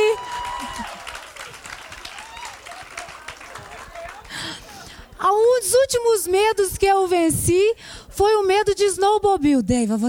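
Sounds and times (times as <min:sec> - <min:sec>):
scattered cheers: 0:00.0 - 0:04.8
crowd clapping: 0:00.0 - 0:05.0
speech: 0:05.9 - 0:10.0.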